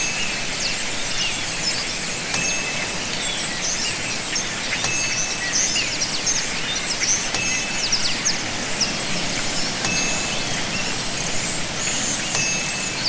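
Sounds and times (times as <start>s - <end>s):
jungle birds: 0.0s - 13.0s
jungle waterfall: 5.3s - 13.0s.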